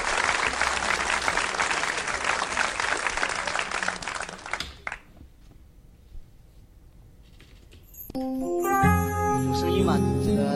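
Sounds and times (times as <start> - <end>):
crowd clapping: 0.0 - 5.2
backing track music: 8.2 - 10.5.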